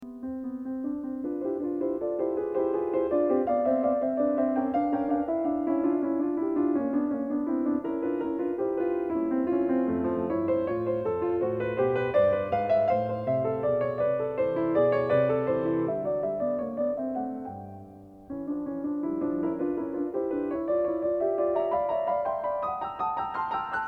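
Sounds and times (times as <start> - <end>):
piano variations in C: 0.0 - 23.8.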